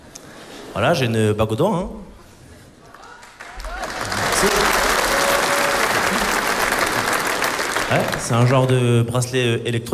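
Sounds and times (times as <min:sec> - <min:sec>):
speech: 0:00.7 - 0:02.1, 0:07.9 - 0:09.9
audience applause: 0:02.9 - 0:08.9
faint cheers and voices: 0:03.0 - 0:06.3.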